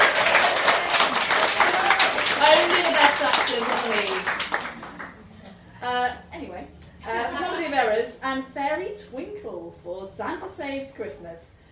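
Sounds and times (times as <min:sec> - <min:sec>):
audience applause: 0:00.0 - 0:05.2
speech: 0:03.2 - 0:04.5, 0:05.9 - 0:11.6.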